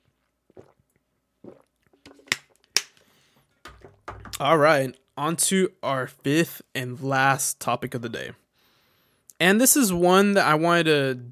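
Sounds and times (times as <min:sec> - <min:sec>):
person drinking water: 0:00.0 - 0:04.0
speech: 0:04.4 - 0:08.4, 0:09.4 - 0:11.3.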